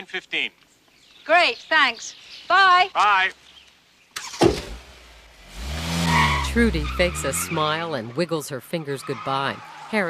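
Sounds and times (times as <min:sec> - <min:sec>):
speech: 0:00.0 - 0:00.7, 0:01.3 - 0:03.5, 0:06.6 - 0:10.0
car pulling away from the curb: 0:04.2 - 0:10.0
thump: 0:04.4 - 0:04.8.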